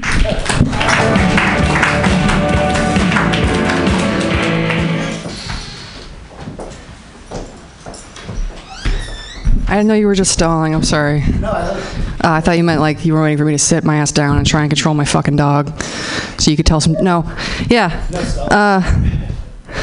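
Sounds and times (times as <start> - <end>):
audience cheering and applauding: 0.0 - 5.4
speech: 9.8 - 19.8.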